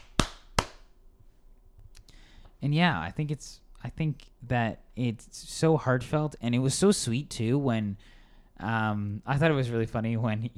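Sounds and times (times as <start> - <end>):
hand claps: 0.0 - 1.0
speech: 2.6 - 10.5.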